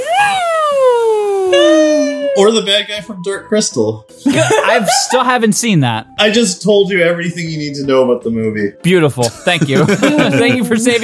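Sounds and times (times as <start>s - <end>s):
voice imitating a kid's blow-in toy horn: 0.0s - 2.4s
speech: 2.4s - 11.0s
laughter: 4.3s - 5.3s, 9.2s - 11.0s.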